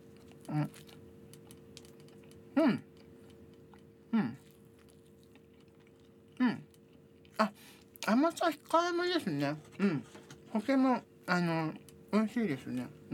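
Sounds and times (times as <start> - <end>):
bites and chewing on an azuki bean sweet: 0.0 - 8.8
speech: 0.5 - 1.0, 2.6 - 2.9, 8.2 - 13.1.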